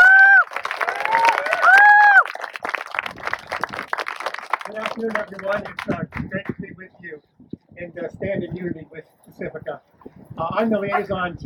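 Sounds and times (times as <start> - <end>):
cheering and loud whoops or whistles: 0.0 - 2.6
audience clapping: 0.0 - 6.6
speech: 5.3 - 9.9, 10.6 - 11.4.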